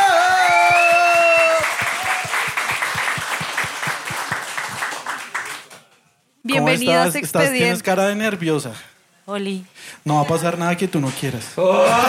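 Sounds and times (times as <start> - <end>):
high sustained whooping cheers: 0.0 - 2.6
loud audience applause: 0.0 - 5.8
speech: 6.7 - 12.0.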